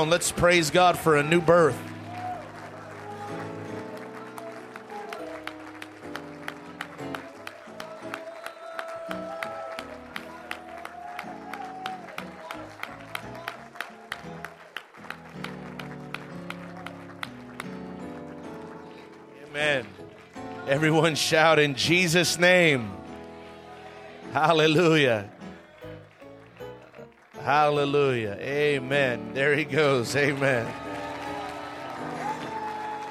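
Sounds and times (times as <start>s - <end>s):
speech: 0.0s - 1.9s, 20.8s - 23.0s, 24.4s - 25.4s, 27.5s - 30.8s
audience applause: 0.0s - 28.2s, 29.6s - 33.0s.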